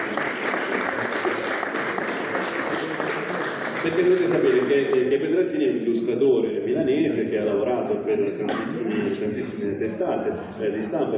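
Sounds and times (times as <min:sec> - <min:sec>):
applause: 0:00.0 - 0:05.1
speech: 0:03.8 - 0:11.1.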